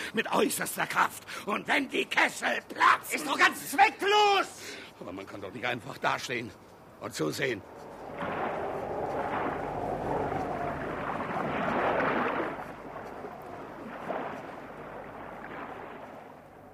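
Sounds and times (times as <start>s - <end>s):
speech: 0.1s - 8.6s
ship turning at sea: 6.2s - 16.7s.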